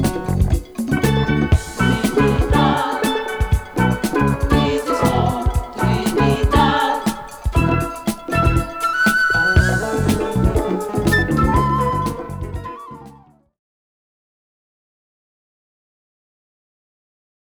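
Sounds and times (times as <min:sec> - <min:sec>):
salsa music: 0:00.0 - 0:13.4.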